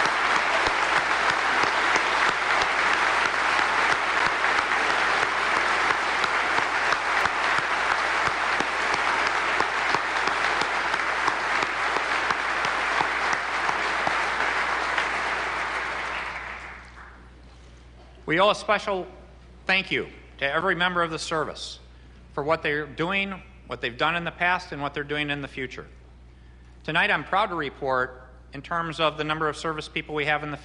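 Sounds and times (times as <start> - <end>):
audience applause: 0.0 - 17.2
speech: 18.3 - 21.8, 22.4 - 26.0, 26.8 - 30.6.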